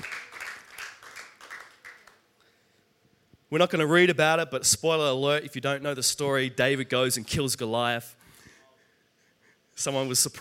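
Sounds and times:
audience clapping in rhythm: 0.0s - 2.3s
speech: 3.5s - 8.2s, 9.8s - 10.3s.

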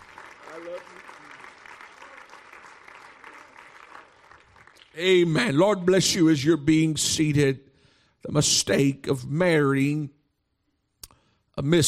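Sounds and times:
audience clapping: 0.0s - 5.4s
speech: 0.6s - 1.2s, 5.0s - 10.2s, 11.6s - 11.8s.

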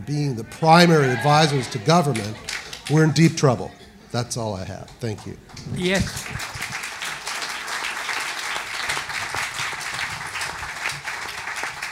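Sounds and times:
speech: 0.0s - 6.6s
audience applause: 0.8s - 3.2s, 6.0s - 11.8s.

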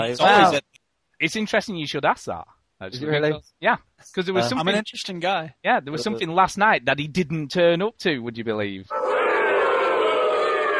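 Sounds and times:
speech: 0.0s - 9.2s
crowd booing: 8.9s - 10.7s.

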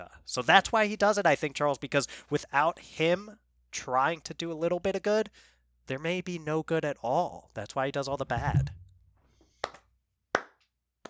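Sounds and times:
speech: 0.0s - 8.8s
hands clapping: 9.6s - 11.0s.

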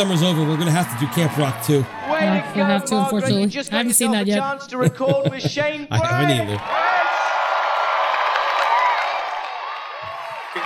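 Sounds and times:
clapping and cheering at an award show: 0.0s - 3.2s, 6.0s - 10.6s
speech: 0.0s - 6.9s
laughter: 4.2s - 6.6s.

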